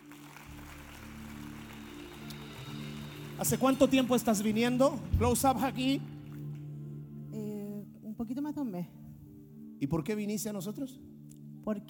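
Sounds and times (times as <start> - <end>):
crowd applause: 0.0 - 6.4
speech: 3.4 - 6.1, 9.8 - 11.8.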